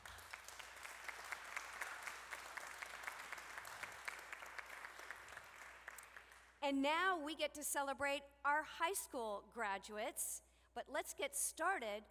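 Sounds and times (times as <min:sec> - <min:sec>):
audience applause for graduates: 0:00.0 - 0:06.5
speech: 0:06.6 - 0:12.0.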